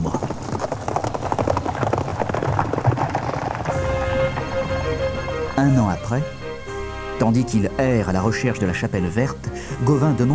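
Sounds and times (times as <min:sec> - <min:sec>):
horse hooves clip-clopping: 0:00.0 - 0:10.3
sustained tonal hum: 0:03.7 - 0:10.3
speech: 0:05.6 - 0:06.4, 0:07.2 - 0:10.3.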